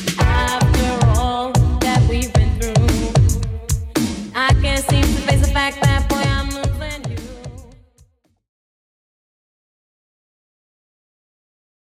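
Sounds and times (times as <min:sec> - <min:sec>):
80s dance mix at 112 bpm: 0:00.0 - 0:07.8.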